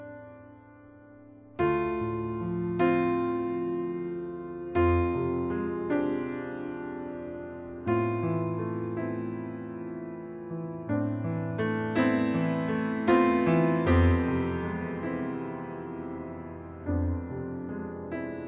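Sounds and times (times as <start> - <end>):
piano: 0.0 - 18.4.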